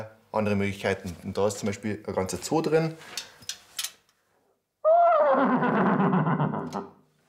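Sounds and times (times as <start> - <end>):
speech: 0.0 - 3.3
tuba imitating a horse's whinny: 4.8 - 7.0.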